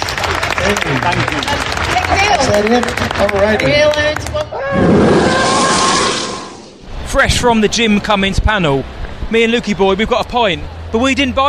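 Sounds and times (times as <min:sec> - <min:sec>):
audience applause: 0:00.0 - 0:04.5
speech: 0:00.7 - 0:05.6, 0:07.1 - 0:11.4
voices and cheers: 0:01.6 - 0:06.6.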